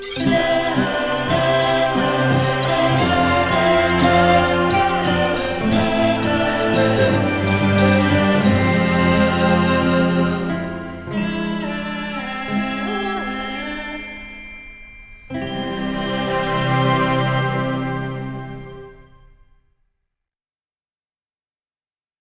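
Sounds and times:
chanting: 0.0s - 13.9s, 15.6s - 18.9s.

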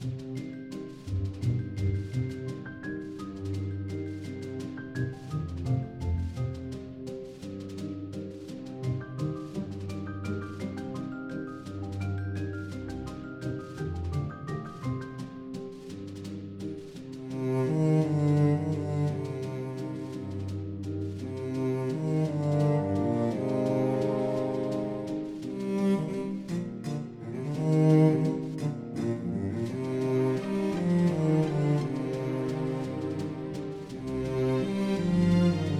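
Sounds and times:
music tutorial loop: 0.0s - 35.7s.

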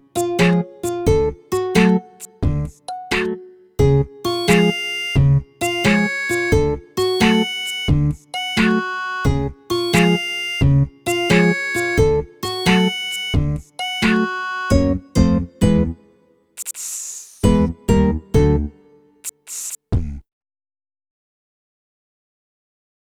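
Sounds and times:
background music for conversation: 0.0s - 16.5s, 17.4s - 19.2s.

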